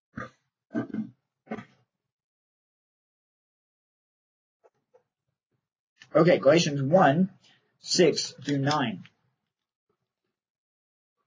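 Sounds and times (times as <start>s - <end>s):
throat clearing: 0.8s - 1.7s
speech: 6.1s - 9.1s.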